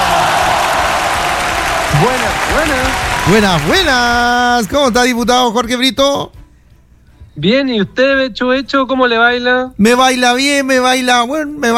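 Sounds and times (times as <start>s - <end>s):
applause: 0.0s - 4.3s
speech: 2.0s - 6.4s, 7.4s - 11.7s.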